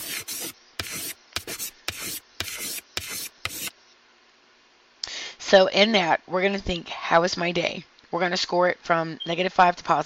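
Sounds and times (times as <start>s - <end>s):
pen writing on a notepad: 0.0s - 3.7s
speech: 5.5s - 10.0s.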